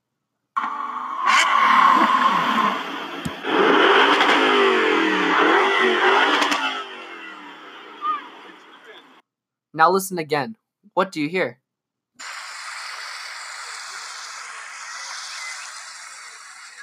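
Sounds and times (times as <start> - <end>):
gasoline car engine revving: 0.6 - 9.2, 12.2 - 16.8
speech: 9.8 - 11.6.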